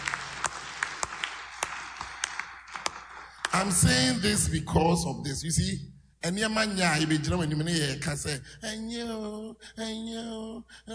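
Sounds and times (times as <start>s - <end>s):
crowd of people clapping together: 0.0s - 4.0s
speech: 3.6s - 10.9s.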